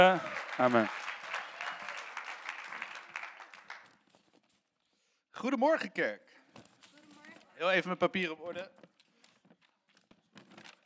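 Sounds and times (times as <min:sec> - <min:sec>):
speech: 0:00.0 - 0:01.0, 0:05.4 - 0:06.7, 0:07.6 - 0:08.9
audience clapping: 0:00.0 - 0:04.3.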